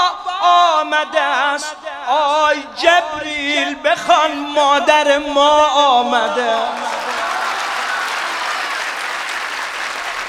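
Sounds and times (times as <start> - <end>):
speech: 1.0 - 6.8
crowd clapping at a religious gathering honoring Zahra: 6.5 - 10.2.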